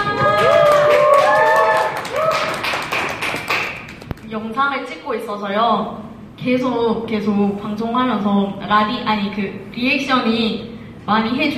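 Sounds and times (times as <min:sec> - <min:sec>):
audience clapping: 0:00.0 - 0:04.3
speech: 0:04.6 - 0:11.5.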